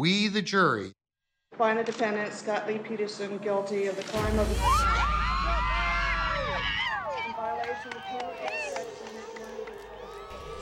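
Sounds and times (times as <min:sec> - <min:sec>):
speech: 0:00.0 - 0:01.0, 0:01.6 - 0:05.0, 0:07.5 - 0:09.0
large crowd cheering wildly at a verdict: 0:04.5 - 0:10.6
scattered claps: 0:07.2 - 0:10.6.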